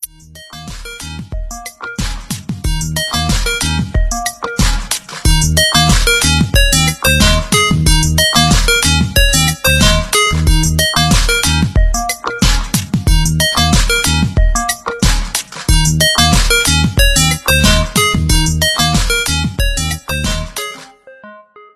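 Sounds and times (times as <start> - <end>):
Vivo V29 Lite original phone ringtone: 0.3 - 2.0, 2.8 - 21.7.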